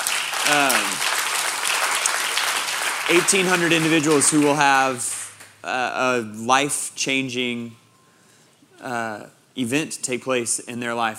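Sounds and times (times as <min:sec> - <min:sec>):
audience applause: 0:00.0 - 0:05.4
speech: 0:00.4 - 0:01.1, 0:03.1 - 0:07.8, 0:08.8 - 0:11.1.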